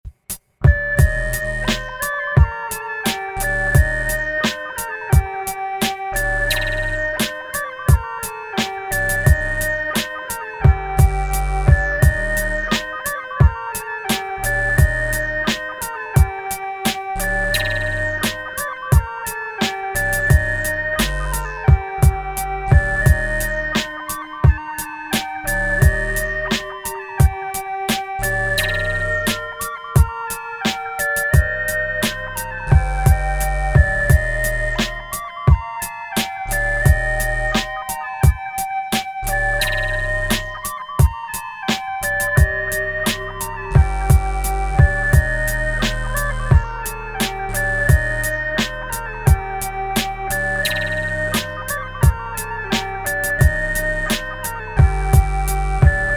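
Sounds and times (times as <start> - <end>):
arpeggiated beat: 0.1 - 56.1.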